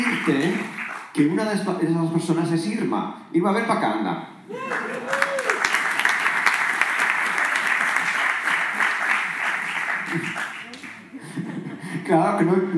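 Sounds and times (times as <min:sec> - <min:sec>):
crowd applause: 0:00.0 - 0:01.1, 0:04.5 - 0:11.4
speech: 0:00.2 - 0:05.2, 0:12.1 - 0:12.7.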